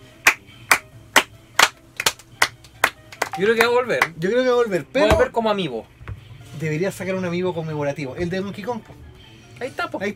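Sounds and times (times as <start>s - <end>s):
applause, hands clapping: 0.2s - 4.2s
speech: 3.4s - 6.0s, 6.6s - 9.0s, 9.6s - 10.1s.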